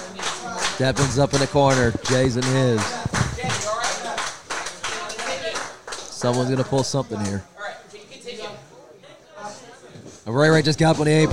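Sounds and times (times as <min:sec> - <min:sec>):
crowd clapping in unison at a live wrestling show: 0:00.0 - 0:07.4
speech: 0:00.8 - 0:03.0, 0:06.2 - 0:07.5, 0:10.3 - 0:11.3.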